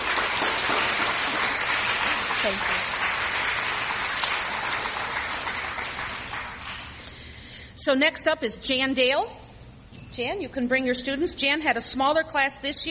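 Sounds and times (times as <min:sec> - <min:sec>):
audience clapping: 0:00.0 - 0:07.2
speech: 0:02.4 - 0:02.9, 0:07.9 - 0:09.4, 0:10.2 - 0:12.9.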